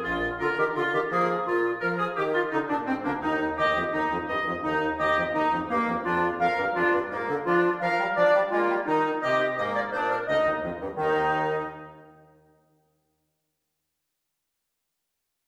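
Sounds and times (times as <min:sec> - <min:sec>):
trio playing vivace: 0:00.0 - 0:12.3.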